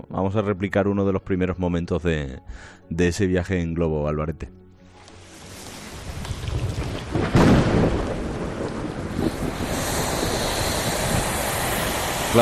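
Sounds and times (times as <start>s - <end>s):
speech: 0.2s - 4.6s
heavy rain in a thunderstorm: 5.1s - 12.4s
rumbling thunder: 5.6s - 12.4s.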